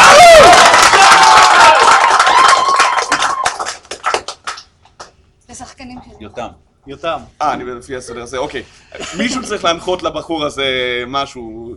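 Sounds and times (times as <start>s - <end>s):
audience cheering: 0.0s - 4.0s
audience applause: 0.0s - 4.6s
speech: 6.9s - 11.7s.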